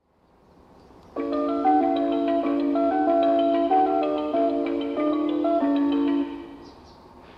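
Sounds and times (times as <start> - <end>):
melody: 1.2 - 6.7.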